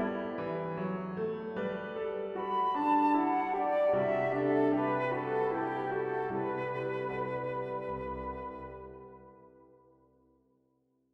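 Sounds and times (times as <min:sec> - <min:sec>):
flute: 0:00.0 - 0:01.0, 0:01.8 - 0:09.9
piano: 0:00.0 - 0:10.3.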